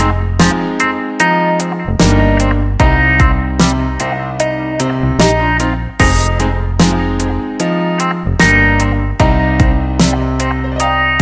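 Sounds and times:
chill relaxation beats: 0:00.0 - 0:11.2.

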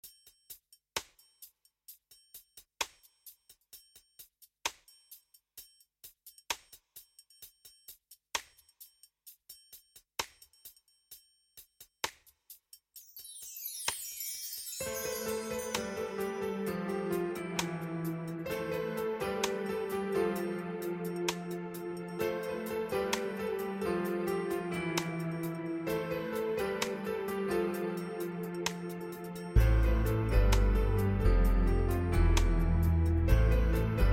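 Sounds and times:
smooth dance music: 0:14.6 - 0:34.1.

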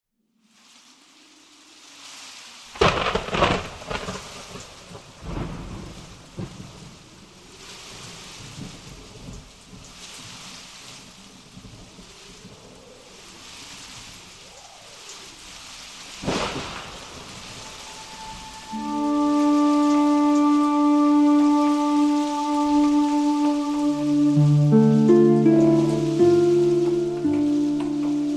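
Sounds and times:
nature sounds: 0:00.4 - 0:28.3
music: 0:18.2 - 0:28.3.

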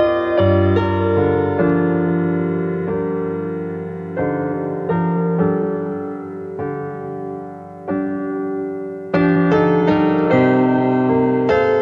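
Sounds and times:
piano music tuned to 432 Hz: 0:00.0 - 0:11.8.

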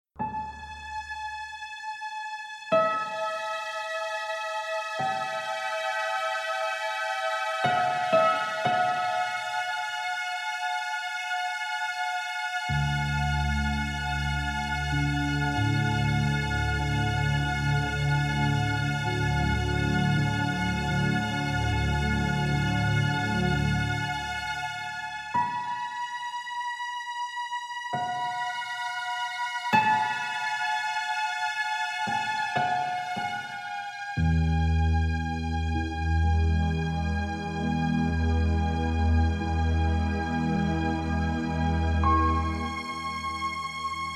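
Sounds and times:
relaxation music at 432 Hz: 0:00.2 - 0:44.1.

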